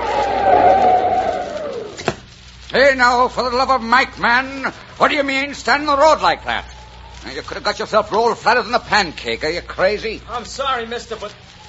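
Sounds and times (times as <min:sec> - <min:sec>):
car tires squealing while braking hard on a road at night: 0:00.0 - 0:01.9
speech: 0:02.7 - 0:11.6.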